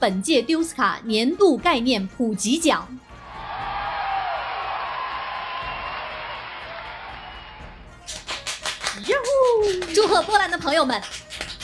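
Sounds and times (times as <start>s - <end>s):
speech: 0.0s - 3.1s, 9.7s - 11.2s
crowd applause: 3.2s - 10.0s
sharp hand claps: 4.6s - 11.6s.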